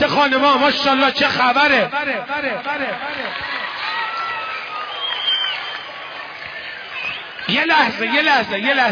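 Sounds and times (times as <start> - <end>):
person speaking loudly: 0.0 - 3.4, 7.5 - 8.8
audience cheering at a festive gathering: 0.1 - 8.8
speech: 0.2 - 3.6, 7.5 - 8.8
audience at a festive gathering applauding: 2.4 - 8.4.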